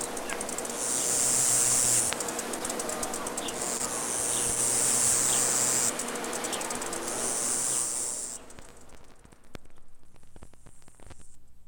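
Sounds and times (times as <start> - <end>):
cricket chirping: 0.0 - 9.0.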